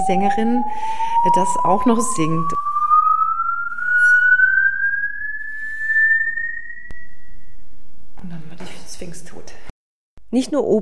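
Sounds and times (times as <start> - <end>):
musical saw gliding to very high pitch: 0.0 - 6.9
speech: 0.1 - 2.8, 10.3 - 10.8.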